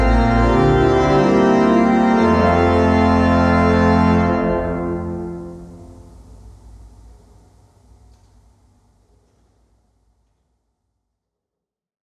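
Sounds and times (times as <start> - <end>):
large organ: 0.0 - 6.5.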